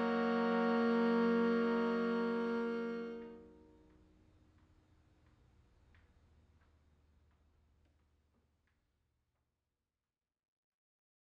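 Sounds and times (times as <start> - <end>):
bass viol: 0.0 - 3.5.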